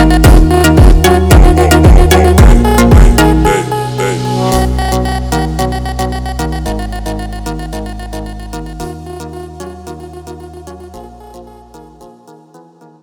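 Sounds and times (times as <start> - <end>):
slowed funk music: 0.0 - 4.8.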